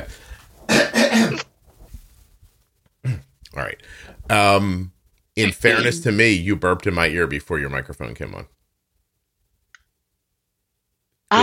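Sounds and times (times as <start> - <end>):
person coughing: 0.7 - 1.5
speech: 4.0 - 8.6.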